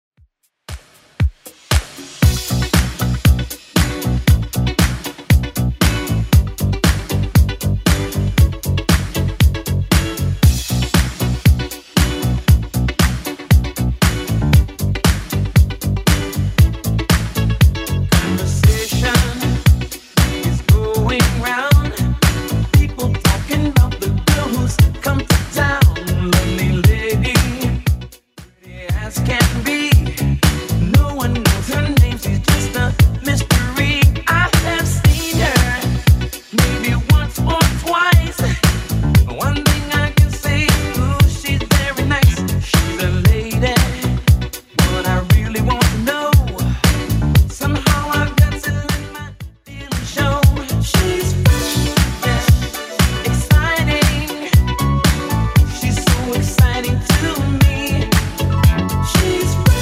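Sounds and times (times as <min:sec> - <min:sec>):
80s dance music: 0:00.7 - 0:59.8.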